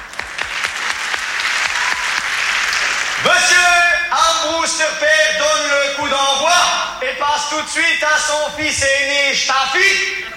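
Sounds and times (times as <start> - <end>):
audience applause: 0.0 - 3.6
speech: 3.2 - 10.3.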